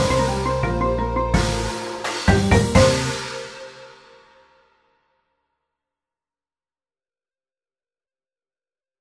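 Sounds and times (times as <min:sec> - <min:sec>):
percussion: 0:00.0 - 0:04.8.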